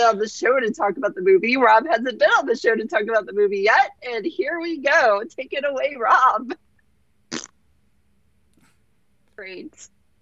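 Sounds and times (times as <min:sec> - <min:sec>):
speech: 0:00.0 - 0:06.6, 0:09.4 - 0:09.9
raspberry farting noise blown through tongue and lips: 0:07.3 - 0:07.5.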